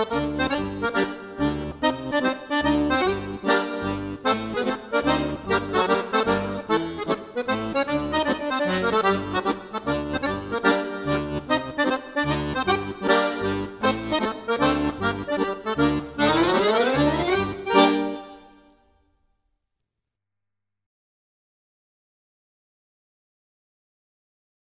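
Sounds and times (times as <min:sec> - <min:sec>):
accordion java dance: 0:00.0 - 0:18.9.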